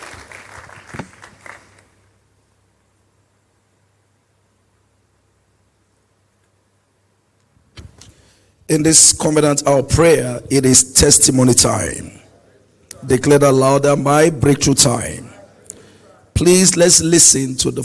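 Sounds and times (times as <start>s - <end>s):
church congregation applauding in praise: 0.0s - 2.0s
speech: 8.7s - 12.2s, 13.0s - 15.4s, 16.4s - 17.8s.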